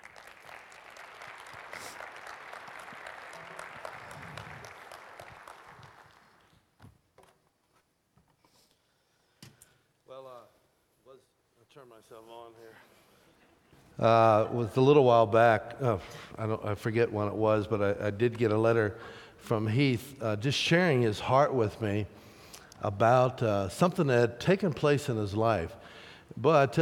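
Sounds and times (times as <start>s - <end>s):
audience applause welcoming a guest speaker at a morning service: 0.0s - 6.6s
speech: 11.7s - 13.0s, 14.0s - 22.2s, 22.8s - 26.8s.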